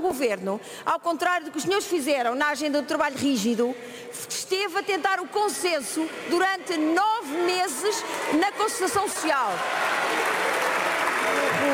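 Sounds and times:
speech: 0.0 - 10.4
noise and applause in parliament: 5.6 - 11.7.

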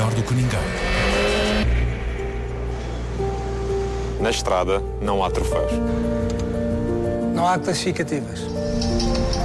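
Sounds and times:
car engine accelerating on the road: 0.0 - 3.8
speech: 0.2 - 0.8, 4.2 - 6.4, 7.4 - 9.3.

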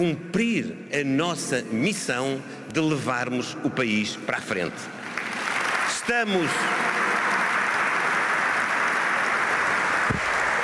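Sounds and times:
speech: 0.0 - 5.0, 6.1 - 6.9
delegates applauding: 5.0 - 10.6.

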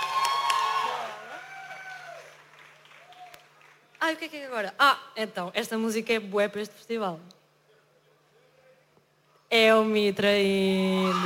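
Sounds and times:
festival crowd applauding and cheering: 0.0 - 4.0
speech: 4.1 - 7.4, 9.5 - 11.2.

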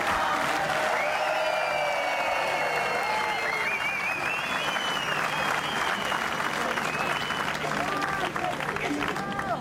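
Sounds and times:
audience round of applause for a boy: 0.0 - 9.5.

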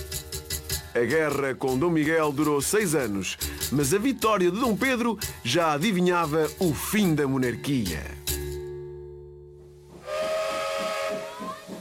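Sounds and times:
speech: 1.0 - 8.2
steam locomotive whistle: 9.9 - 11.7.

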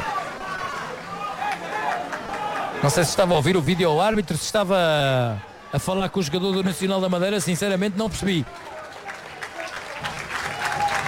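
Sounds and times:
stadium crowd applauding a passing player: 0.0 - 4.0, 5.9 - 11.0
speech: 2.8 - 8.8.

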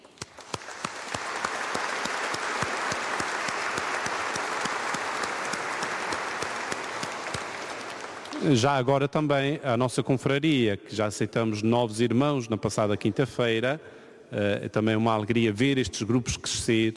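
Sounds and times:
church audience applauding: 0.0 - 8.6
speech: 8.4 - 16.9.

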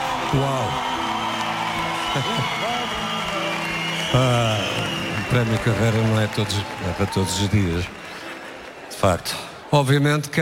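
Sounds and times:
scattered voices cheering and whooping: 0.0 - 7.9
audience applause: 0.0 - 10.1
speech: 0.3 - 0.9, 2.1 - 3.0, 4.1 - 4.7, 5.3 - 8.1, 9.0 - 10.3.

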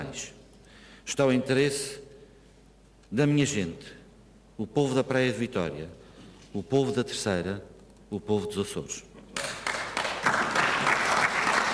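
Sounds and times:
speech: 1.1 - 2.0, 3.1 - 4.0, 4.6 - 9.5
applause from government and party benches in a regional parliament chamber: 9.4 - 11.7.

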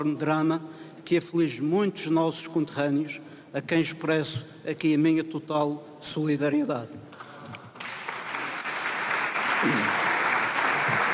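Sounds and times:
speech: 0.0 - 7.2, 9.6 - 9.9
applause from parliament benches: 7.1 - 11.1.

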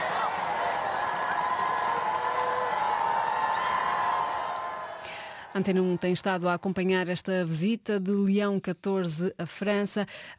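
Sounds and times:
large crowd cheering and chanting: 0.0 - 6.7
speech: 5.6 - 10.3.

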